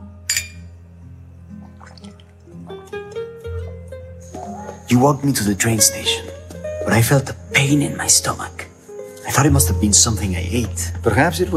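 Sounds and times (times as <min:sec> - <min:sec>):
glasses clinking in a toast: 0:00.3 - 0:00.8
liquid pouring and gurgling into a glass: 0:01.5 - 0:02.7
speech: 0:04.9 - 0:06.3, 0:06.9 - 0:08.6, 0:09.3 - 0:11.5.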